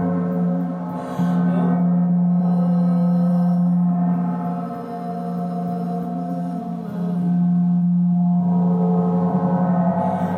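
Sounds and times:
Tibetan singing bowls ringing in a sound-healing session: 0:00.0 - 0:10.3.

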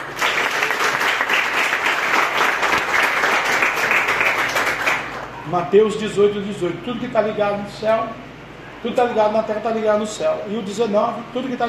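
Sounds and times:
audience clapping: 0:00.0 - 0:05.4
speech: 0:05.5 - 0:11.6.

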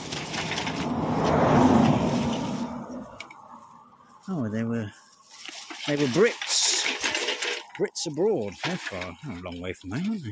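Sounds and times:
car approaching on road: 0:00.0 - 0:05.4
speech: 0:04.3 - 0:05.1, 0:05.9 - 0:06.5, 0:07.8 - 0:10.2.

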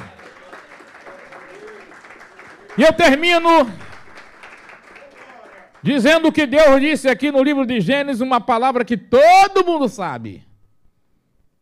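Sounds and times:
audience applauding: 0:00.0 - 0:06.3
speech: 0:02.8 - 0:03.8, 0:05.8 - 0:10.5.

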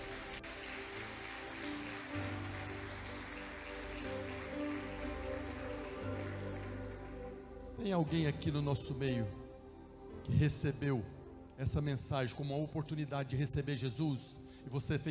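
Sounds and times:
audience applause: 0:00.0 - 0:07.7
speech: 0:07.8 - 0:09.4, 0:10.2 - 0:15.0.

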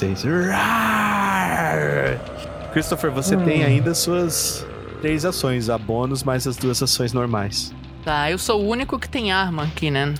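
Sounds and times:
speech: 0:00.0 - 0:01.0, 0:01.7 - 0:10.1
voice imitating a creature's scream: 0:00.3 - 0:06.1.

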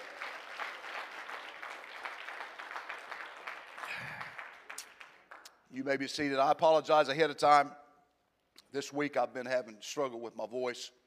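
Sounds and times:
audience clapping hands: 0:00.0 - 0:05.6
speech: 0:05.7 - 0:07.8, 0:08.7 - 0:11.0.

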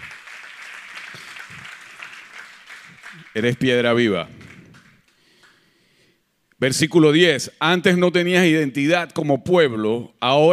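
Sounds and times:
audience applause: 0:00.0 - 0:05.0
speech: 0:03.3 - 0:04.4, 0:06.6 - 0:10.5.

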